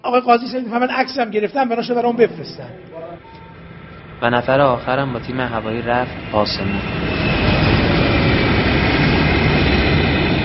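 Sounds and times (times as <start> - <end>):
speech: 0.0 - 3.4, 4.2 - 7.2
Falcon 50 jet aircraft engine and airflow roar in flight: 2.3 - 10.4.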